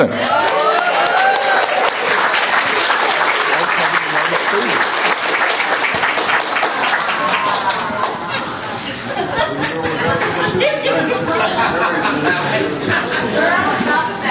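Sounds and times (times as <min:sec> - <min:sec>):
audience cheering: 0:00.0 - 0:08.6
laughter: 0:06.9 - 0:14.1.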